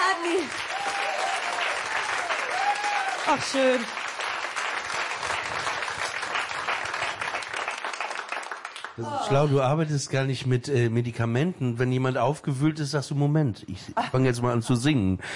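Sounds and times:
audience applause: 0:00.0 - 0:09.6
speech: 0:03.2 - 0:04.1, 0:09.0 - 0:15.3.

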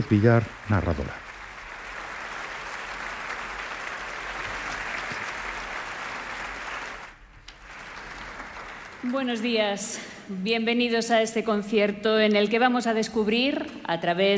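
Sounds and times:
speech: 0:00.0 - 0:01.2, 0:09.1 - 0:14.3
concert audience applause: 0:00.0 - 0:09.8.

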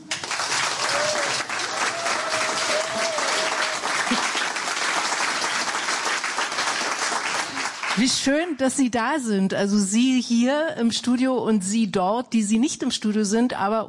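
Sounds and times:
full studio audience applauding: 0:00.0 - 0:08.5
speech: 0:08.0 - 0:13.8.

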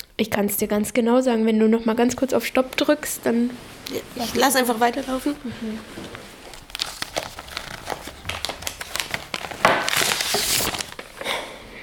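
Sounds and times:
speech: 0:00.2 - 0:06.2
paper hospital patient file pulled out and handled: 0:04.1 - 0:11.2.

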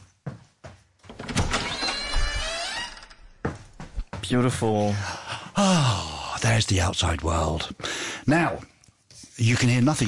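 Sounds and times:
door opening with a whirring scraping slide: 0:01.1 - 0:03.2
speech: 0:04.2 - 0:08.7, 0:09.4 - 0:10.0.

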